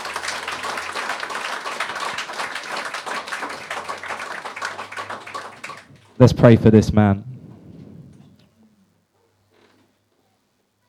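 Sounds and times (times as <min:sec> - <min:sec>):
audience clapping: 0:00.0 - 0:06.6
speech: 0:06.2 - 0:07.3.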